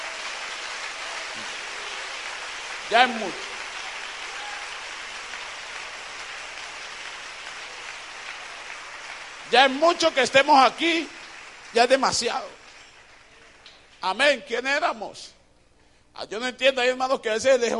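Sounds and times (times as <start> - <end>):
audience applauding: 0.0 - 14.0
speech: 2.9 - 3.5, 9.5 - 12.6, 14.0 - 15.4, 16.2 - 17.7.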